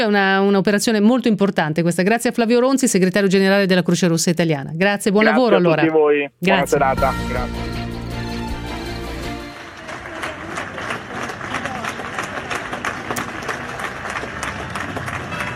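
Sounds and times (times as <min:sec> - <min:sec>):
speech: 0:00.0 - 0:07.8
neighbourhood applause in Milan: 0:09.3 - 0:15.5.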